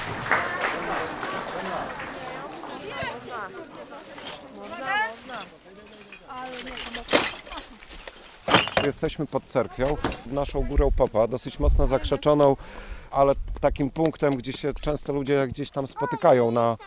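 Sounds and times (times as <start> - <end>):
group applause: 0.0 - 3.4
several voices talking and calling out: 0.4 - 12.7, 15.4 - 16.8
speech: 8.8 - 16.8.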